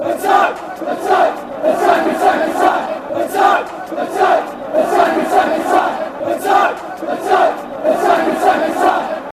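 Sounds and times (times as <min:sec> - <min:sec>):
people chanting: 0:00.0 - 0:09.3.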